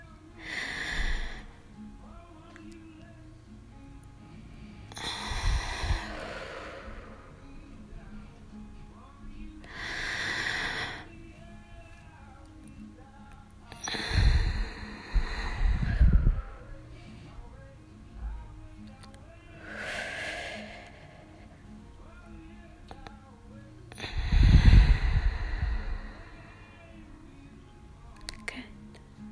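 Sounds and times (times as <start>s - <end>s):
slow deep breathing: 0.0s - 1.8s, 4.2s - 8.5s, 9.6s - 11.5s, 13.8s - 17.7s, 19.3s - 21.8s, 23.9s - 27.1s.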